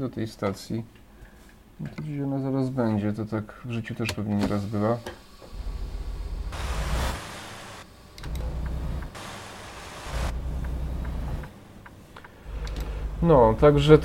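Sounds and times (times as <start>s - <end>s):
speech: 0.0s - 1.0s, 1.8s - 5.2s, 13.2s - 14.0s
road noise: 5.3s - 14.0s
car engine rumbling while driving toward a petrol station: 5.4s - 14.0s.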